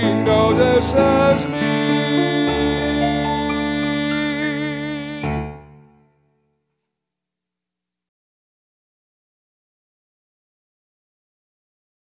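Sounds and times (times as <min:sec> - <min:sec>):
tango duet: 0:00.0 - 0:06.0.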